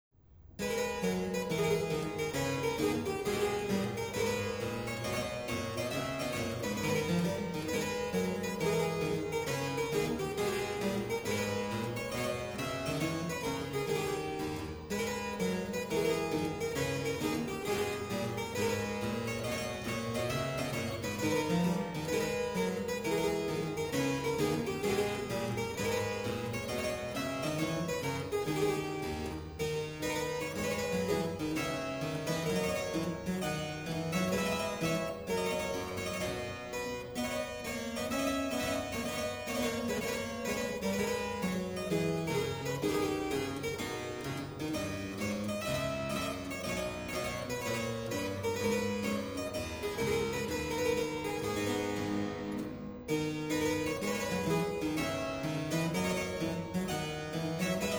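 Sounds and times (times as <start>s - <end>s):
gavotte: 0.6s - 57.9s.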